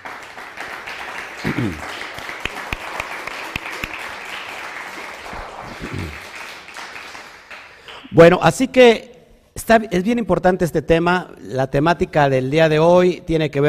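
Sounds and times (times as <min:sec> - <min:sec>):
applause: 0:00.0 - 0:08.1
speech: 0:01.4 - 0:01.9, 0:08.2 - 0:09.1, 0:09.7 - 0:13.6.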